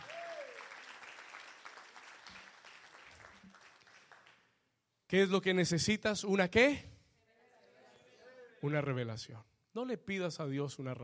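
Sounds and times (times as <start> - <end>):
audience applause: 0.0 - 4.4
speech: 5.1 - 6.9, 8.6 - 11.0.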